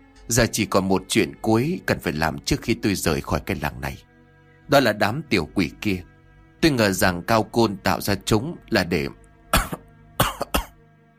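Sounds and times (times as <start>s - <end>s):
speech: 0.3s - 4.1s, 4.7s - 9.8s
man coughing: 9.5s - 10.8s.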